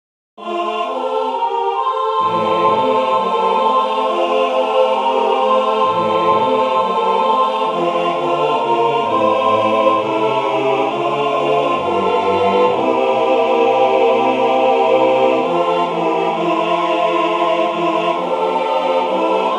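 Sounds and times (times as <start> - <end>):
SATB church choir singing: 0.4 - 19.5.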